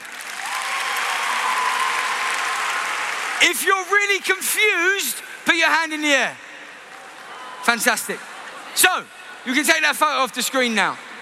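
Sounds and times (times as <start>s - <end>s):
audience clapping: 0.0s - 4.6s
speech: 3.4s - 6.4s, 7.6s - 11.1s.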